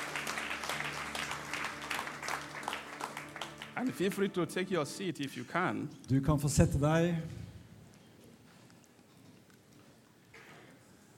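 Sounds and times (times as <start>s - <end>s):
audience clapping: 0.0s - 4.7s
speech: 3.8s - 7.4s.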